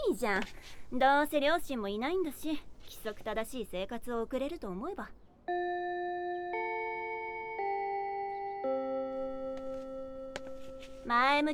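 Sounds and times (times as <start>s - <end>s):
speech: 0.1s - 6.2s, 10.8s - 11.5s
school bell chime ringing: 5.5s - 11.3s.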